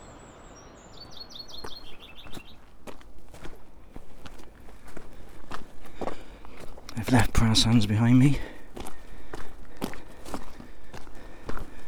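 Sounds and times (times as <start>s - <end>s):
footsteps on a clifftop path along Leskeith Cliffs: 1.0s - 11.8s
speech: 7.0s - 8.5s.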